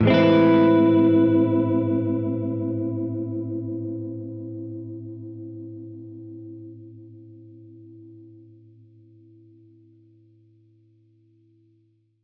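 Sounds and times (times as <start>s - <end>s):
Gretsch guitar chord A minor nine major seven: 0.0s - 9.5s.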